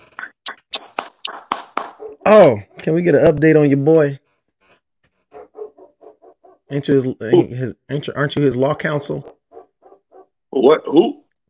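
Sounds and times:
booty clapping fleshy slaps: 0:00.5 - 0:02.2
speech: 0:02.3 - 0:04.2, 0:06.7 - 0:09.4, 0:10.6 - 0:11.2.

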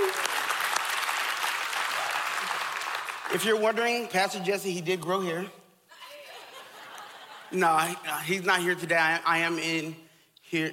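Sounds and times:
audience applauding a worship team: 0:00.0 - 0:03.6
speech: 0:03.3 - 0:05.6, 0:07.5 - 0:10.7
laughter: 0:06.0 - 0:08.0.

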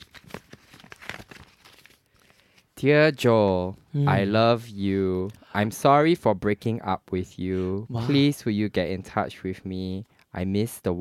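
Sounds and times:
card paper crinkling and tearing as it is unfolded: 0:00.0 - 0:02.7
speech: 0:02.8 - 0:10.9.

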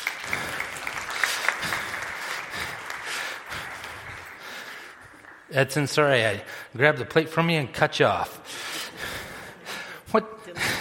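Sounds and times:
crowd clapping: 0:00.0 - 0:06.4
speech: 0:05.5 - 0:08.5, 0:10.1 - 0:10.4.

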